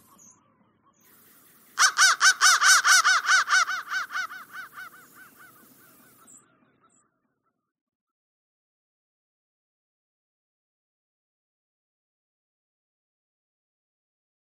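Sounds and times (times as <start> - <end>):
crow calling harshly: 1.8 - 6.4.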